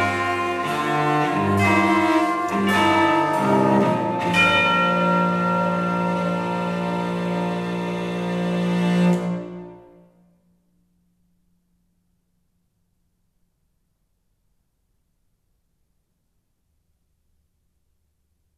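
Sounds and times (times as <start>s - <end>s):
harpsichord: 0.0s - 9.6s
tubular bells: 0.0s - 9.9s
bassoon: 0.0s - 10.2s
violoncello: 0.0s - 10.2s.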